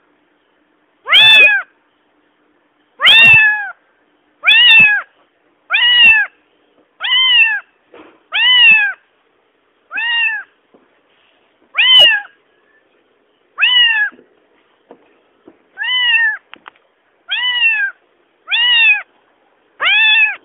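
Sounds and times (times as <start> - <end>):
cat meowing: 1.0 - 1.7, 3.0 - 3.8, 4.4 - 5.1, 5.7 - 6.4, 7.0 - 7.7, 8.3 - 9.0, 9.9 - 10.5, 11.7 - 12.4, 13.6 - 14.2, 15.8 - 16.5, 17.3 - 19.1, 19.8 - 20.4.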